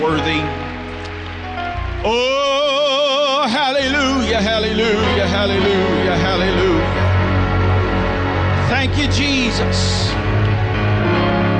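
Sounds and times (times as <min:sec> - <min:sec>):
speech: 0:00.0 - 0:00.6, 0:02.0 - 0:02.4, 0:03.8 - 0:07.0, 0:08.7 - 0:10.4
sustained harmonic tones: 0:00.0 - 0:11.5
audience clapping hands in praise: 0:08.0 - 0:11.0.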